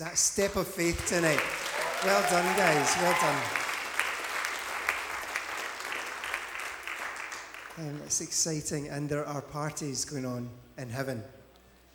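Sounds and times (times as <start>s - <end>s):
speech: 0.0s - 3.6s, 7.8s - 11.4s
audience cheering and applause: 0.9s - 7.8s.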